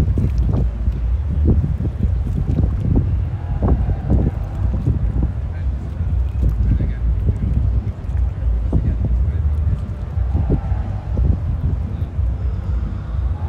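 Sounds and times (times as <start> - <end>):
bursts of murmuring voice-like sound: 0.0 - 13.4
ocean roar on a Portuguese evening: 2.3 - 6.4, 9.7 - 13.4.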